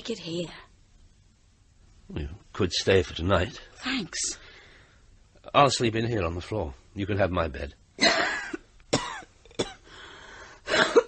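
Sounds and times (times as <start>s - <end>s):
speech: 0.0s - 0.6s, 2.1s - 4.4s, 5.5s - 8.2s
bad cough: 8.0s - 9.9s, 10.7s - 11.0s.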